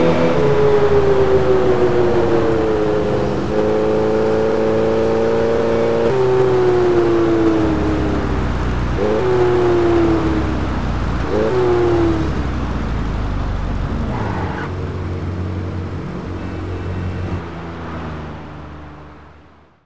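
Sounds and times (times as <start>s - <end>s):
Ferrari 308 GTS Quattrovalvole engine: 0.0s - 19.8s.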